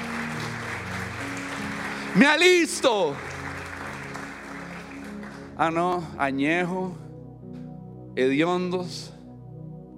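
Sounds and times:
congregation applause at a Spanish-language church service: 0.0 - 6.0
speech: 2.1 - 3.3, 5.6 - 7.0, 8.2 - 9.1.

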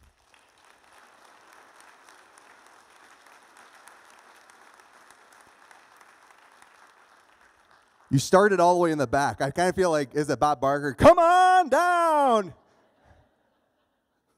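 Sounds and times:
faint applause from a church family service audience welcoming a speaker: 0.0 - 9.4
speech: 8.1 - 12.6.

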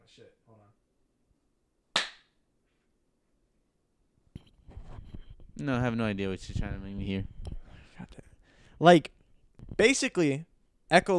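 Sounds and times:
speech: 0.2 - 0.8, 5.6 - 7.4, 8.8 - 9.2, 9.8 - 11.1
single hand clap: 2.0 - 2.3.

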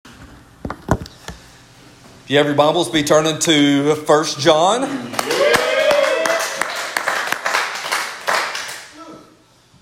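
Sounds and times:
speech: 2.3 - 5.3
audience clapping: 5.1 - 9.0
brief cheer: 5.2 - 6.7.

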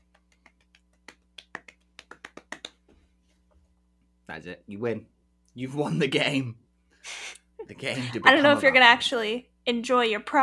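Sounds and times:
hand claps: 0.0 - 3.0
speech: 4.3 - 6.6, 7.7 - 10.4.

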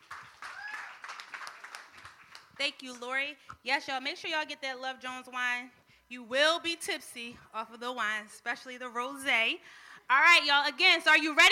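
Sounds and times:
audience round of applause: 0.0 - 2.5
speech: 2.6 - 11.5.

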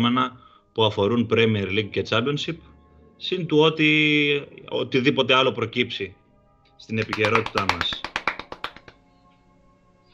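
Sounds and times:
speech: 0.0 - 6.2, 6.8 - 8.0
hand clapping: 6.9 - 9.0.

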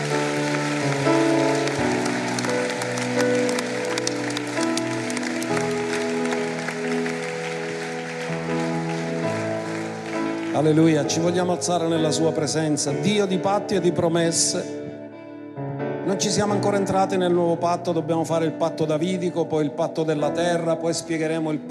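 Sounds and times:
audience applause: 0.0 - 11.9
speech: 10.6 - 14.8, 16.2 - 21.6.

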